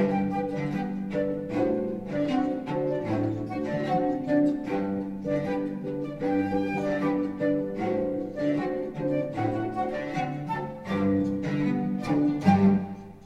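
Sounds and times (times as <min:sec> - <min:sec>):
cello: 0:00.0 - 0:13.2
flute: 0:00.0 - 0:13.2
harp: 0:00.0 - 0:13.2.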